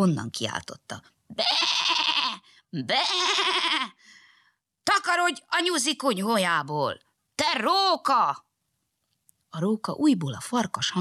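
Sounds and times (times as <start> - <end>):
speech: 0.0 - 1.9, 2.7 - 4.2, 4.8 - 8.4, 9.5 - 10.9
lamb bleating: 1.3 - 4.0.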